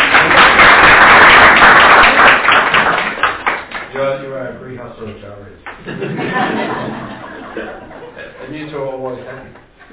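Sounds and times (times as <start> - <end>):
round of applause: 0.0 - 4.0
laughter: 5.8 - 8.6, 9.2 - 9.9.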